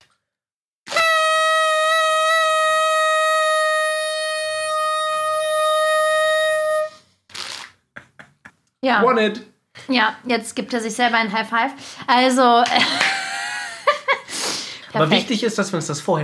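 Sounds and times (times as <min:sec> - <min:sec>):
horn toot: 0:00.9 - 0:07.7
laughter: 0:08.0 - 0:08.5, 0:12.7 - 0:14.3
speech: 0:08.8 - 0:13.2, 0:15.0 - 0:16.2.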